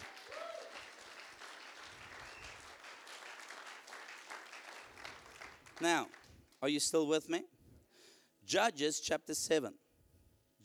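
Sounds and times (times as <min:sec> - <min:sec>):
audience clapping: 0:00.0 - 0:06.7
speech: 0:05.8 - 0:07.5, 0:08.5 - 0:09.8.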